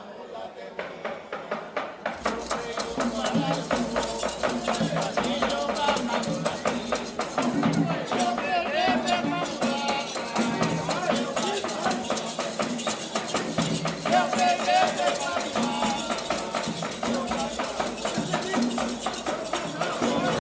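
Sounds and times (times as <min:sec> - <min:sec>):
batuque drumming from Tietê: 0:00.8 - 0:20.3.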